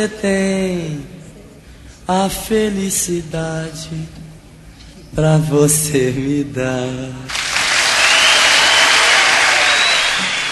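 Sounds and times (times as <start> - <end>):
speech: 0.0 - 1.2, 2.1 - 4.2, 5.1 - 7.4
live audience applause at song's end: 7.3 - 10.5.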